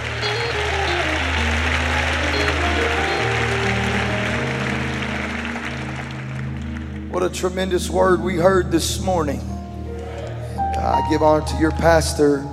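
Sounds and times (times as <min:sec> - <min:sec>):
crowd clapping hands: 0:00.0 - 0:07.9
speech: 0:07.2 - 0:09.5, 0:10.9 - 0:12.5.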